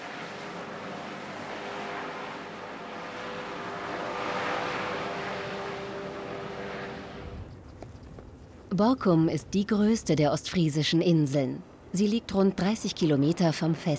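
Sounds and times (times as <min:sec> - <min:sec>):
aircraft flying a patient to a partner clinic: 0:00.0 - 0:07.9
speech: 0:08.8 - 0:13.9.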